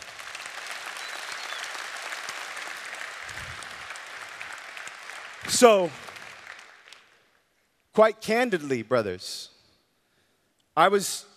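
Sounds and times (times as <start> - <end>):
audience applause: 0.0 - 7.2
speech: 5.5 - 6.0, 8.0 - 9.5, 10.8 - 11.3.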